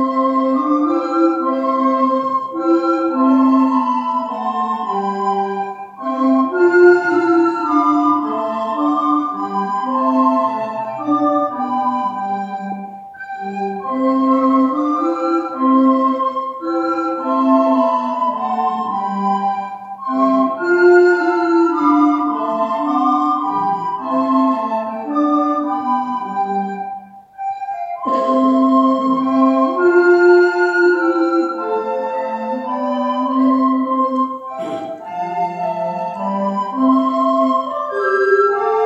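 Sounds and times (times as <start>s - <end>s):
group of flutes playing: 0.0s - 38.8s.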